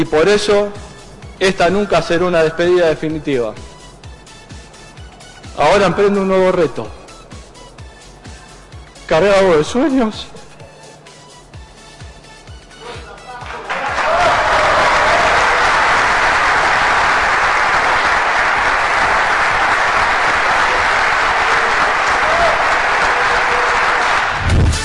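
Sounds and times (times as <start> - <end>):
speech: 0.0 - 3.7, 5.6 - 7.0, 9.1 - 10.4
audience applause: 13.4 - 24.7.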